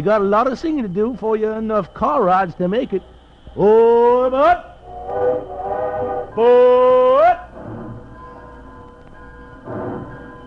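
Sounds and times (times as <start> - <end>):
speech: 0.0 - 5.6, 6.4 - 7.0
train chugging: 0.0 - 10.4
train whistle: 3.4 - 8.4.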